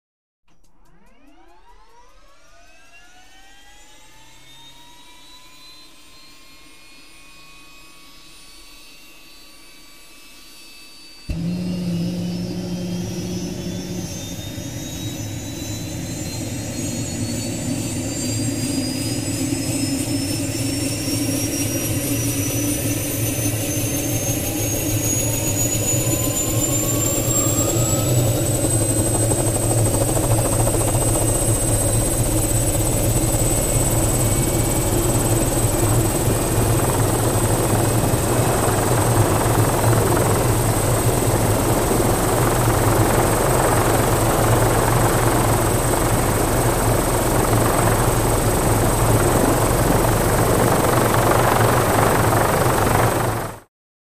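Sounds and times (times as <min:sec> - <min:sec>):
Hughes 500 helicopter starting and idling: 0:11.3 - 0:53.7.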